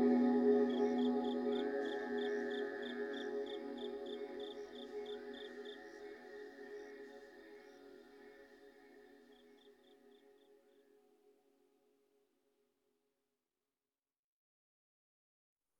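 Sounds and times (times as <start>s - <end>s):
forest at night: 0.0s - 11.4s.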